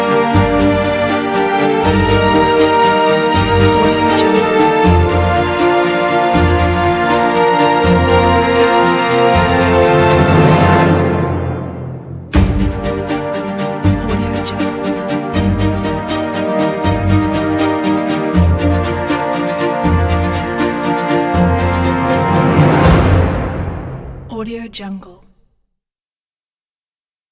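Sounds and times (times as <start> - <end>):
playful motivational chamber strings: 0.0 - 24.2.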